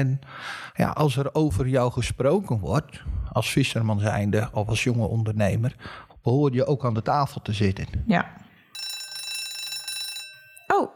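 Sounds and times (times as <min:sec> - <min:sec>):
speech: 0:00.0 - 0:08.4
bell ringing: 0:08.7 - 0:10.9.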